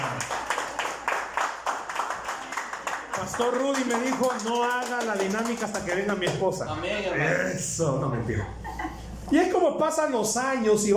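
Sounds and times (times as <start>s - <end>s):
audience applause: 0.0s - 6.0s
speech: 3.2s - 8.6s, 9.3s - 10.9s.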